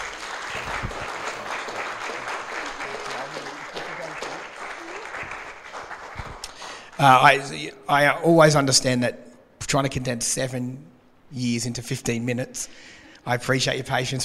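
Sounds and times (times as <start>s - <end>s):
audience clapping: 0.0s - 7.2s
speech: 7.0s - 14.2s.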